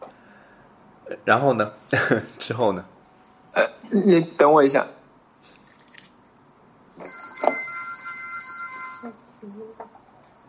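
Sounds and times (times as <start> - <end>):
speech: 1.1 - 2.9, 3.6 - 5.0
phone ringtone from automated temperature-check call: 7.0 - 9.6.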